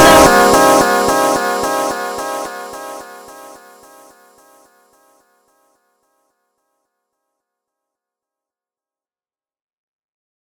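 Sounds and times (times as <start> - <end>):
funk music: 0.0 - 3.1.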